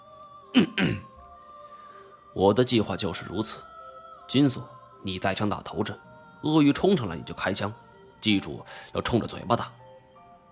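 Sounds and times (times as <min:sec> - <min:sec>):
speech: 0:00.6 - 0:01.1, 0:02.4 - 0:03.7, 0:04.3 - 0:09.8
throat clearing: 0:00.6 - 0:01.1.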